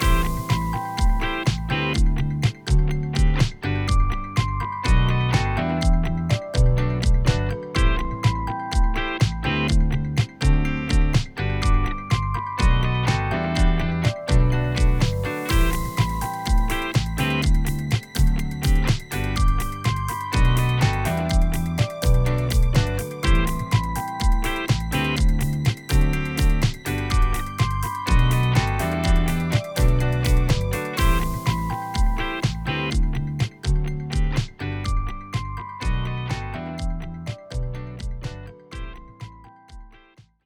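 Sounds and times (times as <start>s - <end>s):
K-pop music: 0.0s - 39.3s.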